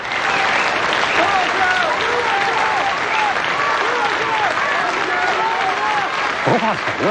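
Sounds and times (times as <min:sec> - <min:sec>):
audience applause: 0:00.0 - 0:07.0
laughter: 0:01.2 - 0:07.0.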